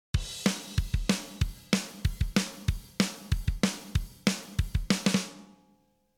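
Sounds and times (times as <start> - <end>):
drums: 0.1 - 5.5.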